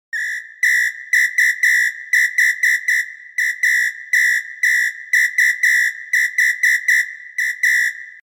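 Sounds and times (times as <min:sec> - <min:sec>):
whistle: 0:00.1 - 0:08.2.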